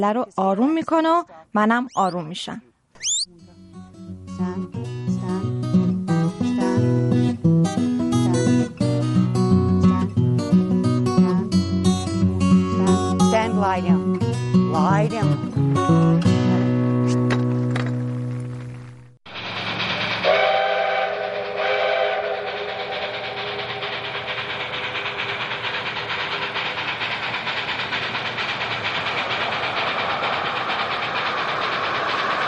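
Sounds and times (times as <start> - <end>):
speech: 0.0 - 3.4, 4.4 - 5.0, 13.6 - 16.3
locomotive 473 running: 3.0 - 16.7, 17.4 - 32.4
locomotive 473 blowing its whistle: 20.2 - 25.2.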